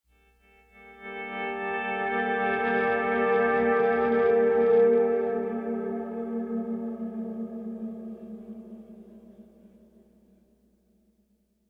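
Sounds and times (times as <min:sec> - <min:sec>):
pleasant guitar playing: 0:00.5 - 0:07.8.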